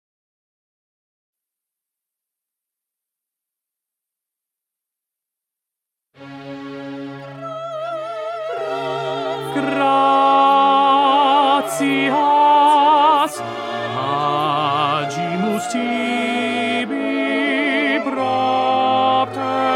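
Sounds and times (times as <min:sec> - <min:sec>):
tenor singing: 0:07.3 - 0:19.7.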